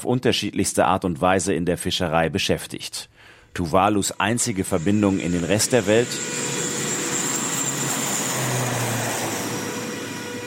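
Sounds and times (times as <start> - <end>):
speech: 0.0 - 6.7
small propeller aircraft on the Funafuti–Fiji route droning: 4.1 - 10.4.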